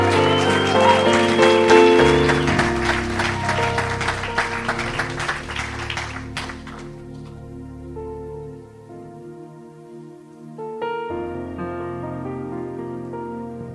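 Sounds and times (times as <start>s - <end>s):
audience applauding for visitors: 0.0s - 7.4s.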